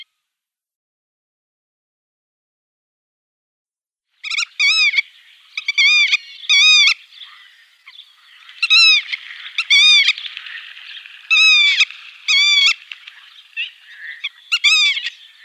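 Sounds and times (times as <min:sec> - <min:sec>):
Black-tailed godwit sharp nasal call: 0:04.2 - 0:15.4.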